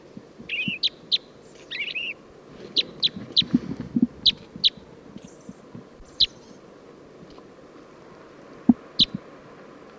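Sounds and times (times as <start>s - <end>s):
male purple finch song: 0.0s - 6.7s, 8.6s - 9.9s
female crossbill calling: 0.4s - 6.7s, 8.7s - 9.2s.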